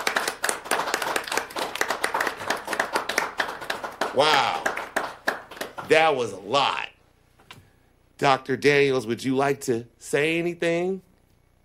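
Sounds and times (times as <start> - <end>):
audience applause: 0.0 - 6.0
speech: 4.2 - 4.7, 5.9 - 6.8, 8.2 - 11.1.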